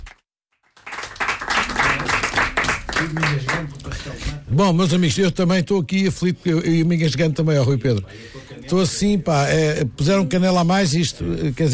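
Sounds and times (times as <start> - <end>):
audience applause for guitarist: 0.0 - 3.6
speech: 3.0 - 11.7.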